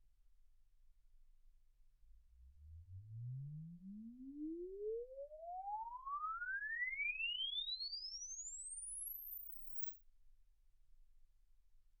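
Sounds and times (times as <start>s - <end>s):
exponential sine sweep from 10 Hz to 24 kHz: 2.8s - 9.9s.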